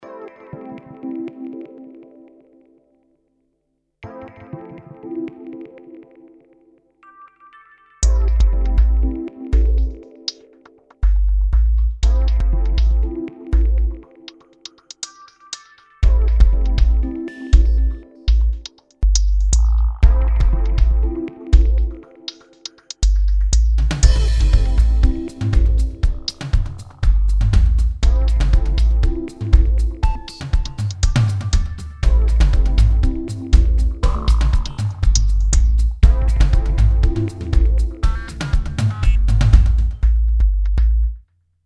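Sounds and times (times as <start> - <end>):
electronic music: 0.0 - 2.9, 4.0 - 41.0.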